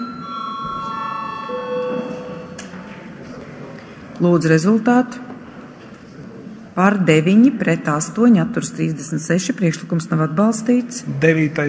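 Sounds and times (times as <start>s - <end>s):
parliamentary voting bell electronic tone: 0.0s - 2.8s
low murmur: 0.0s - 11.6s
speech: 4.2s - 5.3s, 6.8s - 11.6s.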